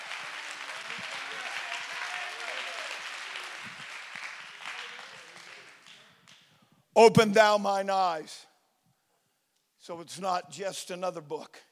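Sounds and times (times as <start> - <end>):
audience clapping and praising: 0.0 - 6.5
speech: 7.0 - 8.5, 9.8 - 11.7.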